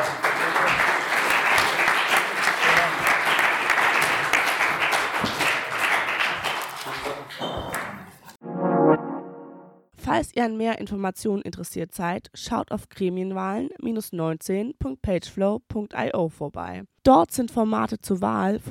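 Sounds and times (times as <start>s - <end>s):
audience applause: 0.0s - 8.0s
brief tonal sound: 8.4s - 9.9s
speech: 10.2s - 18.6s.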